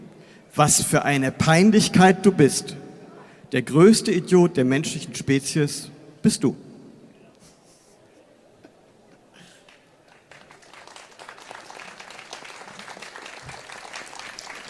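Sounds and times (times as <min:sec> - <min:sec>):
speech: 0:00.6 - 0:02.8, 0:03.5 - 0:06.7
audience clapping: 0:09.6 - 0:14.6.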